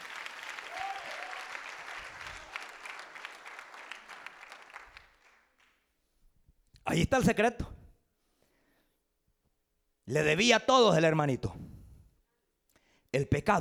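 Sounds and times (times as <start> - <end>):
audience applauding: 0.0 - 5.8
speech: 6.9 - 7.7, 10.1 - 11.7, 13.3 - 13.5.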